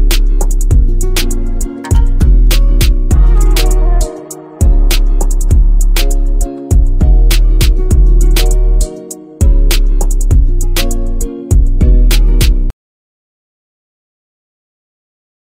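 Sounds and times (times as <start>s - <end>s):
instrumental type beat: 0.0s - 12.7s.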